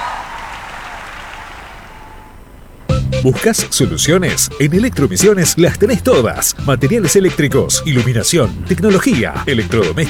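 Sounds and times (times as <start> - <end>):
crowd applause: 0.0 - 2.3
speech: 3.2 - 10.0.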